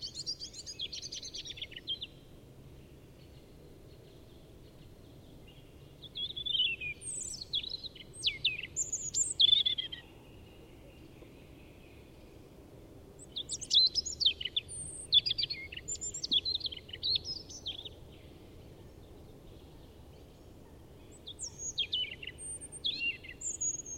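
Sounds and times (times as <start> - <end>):
European robin singing: 0.0 - 12.6, 13.2 - 23.9.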